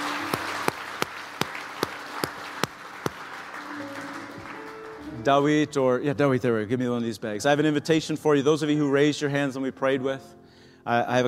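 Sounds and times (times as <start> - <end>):
audience hand clapping: 0.0 - 5.5
speech: 5.2 - 11.2.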